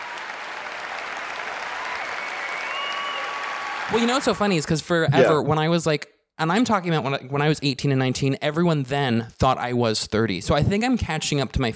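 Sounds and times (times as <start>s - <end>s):
applause sound effect: 0.0s - 5.3s
speech: 3.9s - 11.7s.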